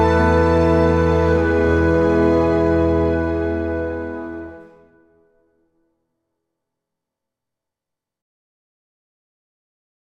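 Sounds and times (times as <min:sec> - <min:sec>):
instrumental music: 0:00.0 - 0:05.8.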